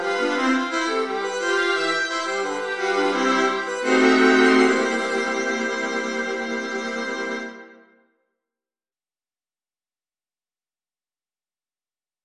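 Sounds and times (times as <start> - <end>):
viola quartet: 0.0 - 7.7.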